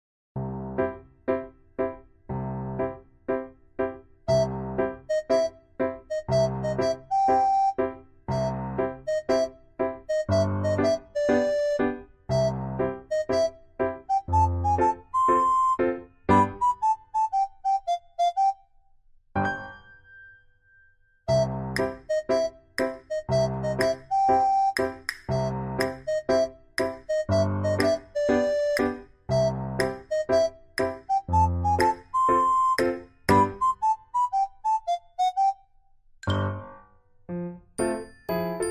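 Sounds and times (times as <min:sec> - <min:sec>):
music: 0:00.4 - 0:38.7.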